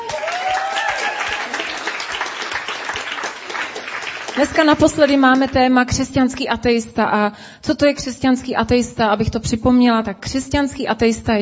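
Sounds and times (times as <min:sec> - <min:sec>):
audience applause: 0:00.0 - 0:05.5
speech: 0:04.4 - 0:11.3.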